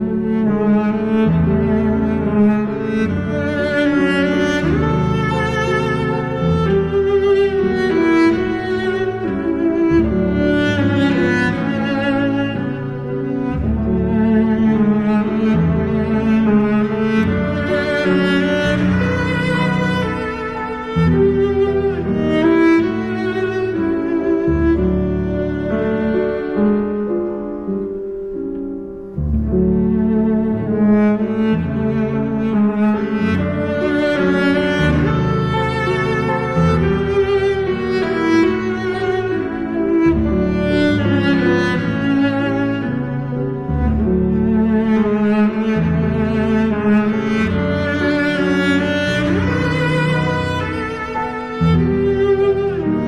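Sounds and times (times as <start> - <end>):
piano: 0.0 - 53.0.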